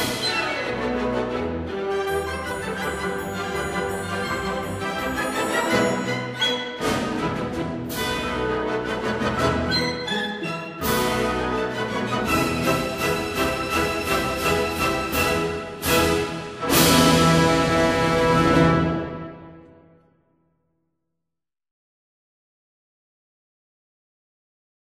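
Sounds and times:
polka music: 0.0s - 19.6s.

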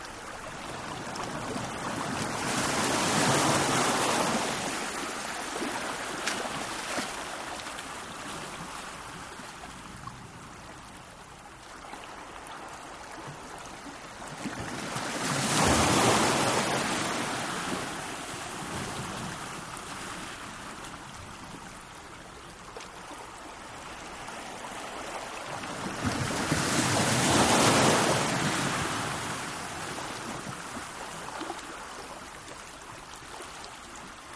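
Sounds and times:
ocean shoreline on a pebble beach: 1.6s - 7.6s, 14.6s - 20.4s, 25.6s - 30.5s.

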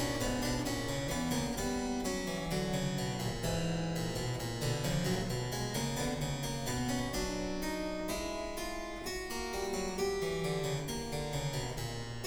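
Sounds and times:
harpsichord solo canon: 0.0s - 12.2s.

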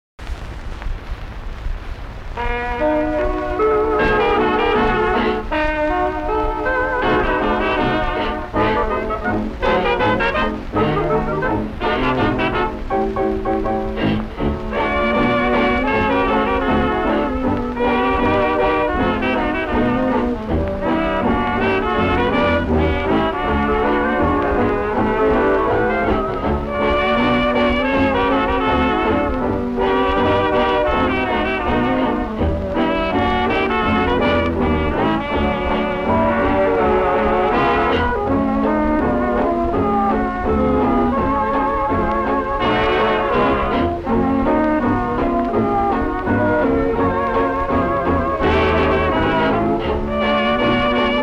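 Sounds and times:
orchestra: 2.3s - 51.2s.

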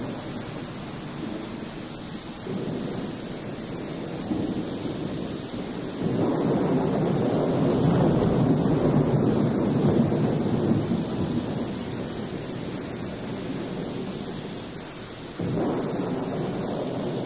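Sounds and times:
torrential rain: 0.0s - 17.2s
thunder: 2.4s - 14.4s, 15.4s - 17.2s.

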